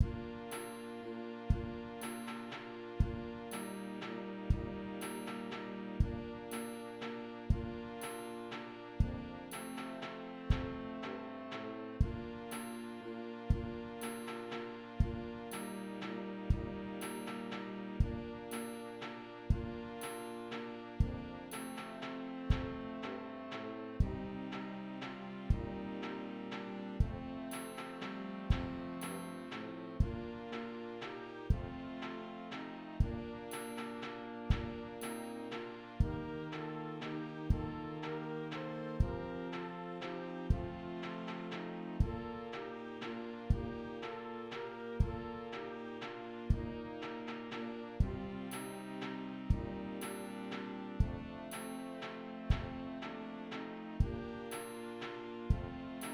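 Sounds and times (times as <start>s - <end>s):
triangle: 0.0s - 56.1s.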